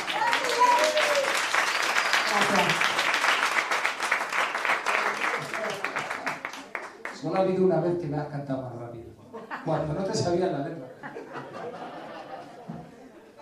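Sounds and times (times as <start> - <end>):
voices and whoops: 0.0 - 1.5
crowd clapping rapidly, as if played at double speed: 0.0 - 7.6
speech: 7.3 - 11.8
laughter: 9.2 - 13.4.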